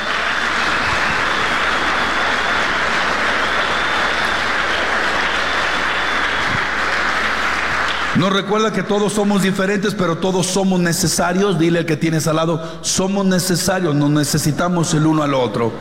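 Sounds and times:
audience applause: 0:00.0 - 0:08.6
speech: 0:08.2 - 0:15.7.

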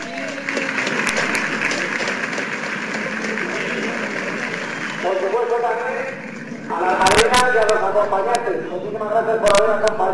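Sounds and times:
audience applause: 0:00.0 - 0:05.9
speech: 0:05.2 - 0:10.1.

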